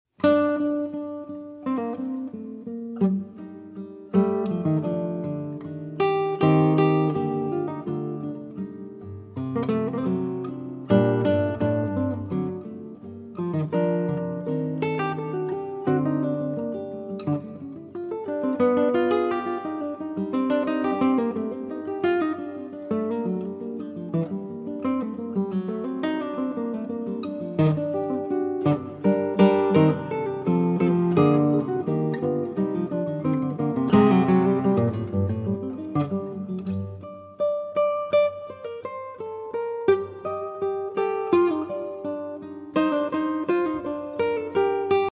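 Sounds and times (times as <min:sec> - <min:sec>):
guitar fugue: 0:00.2 - 0:45.0.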